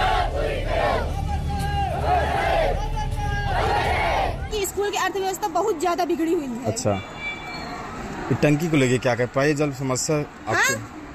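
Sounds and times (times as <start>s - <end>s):
students chanting slogans: 0.0s - 1.2s, 1.9s - 2.8s, 3.5s - 4.4s
speech: 5.1s - 7.2s, 8.3s - 11.0s.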